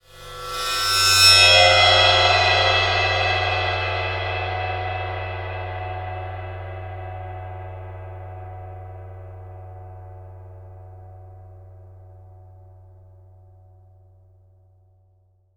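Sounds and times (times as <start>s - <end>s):
cymbal: 0.0s - 10.4s.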